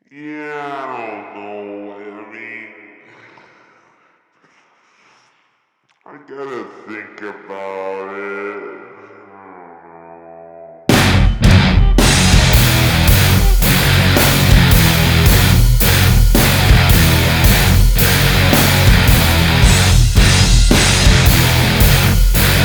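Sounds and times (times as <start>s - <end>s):
noise rock music: 10.9s - 22.6s.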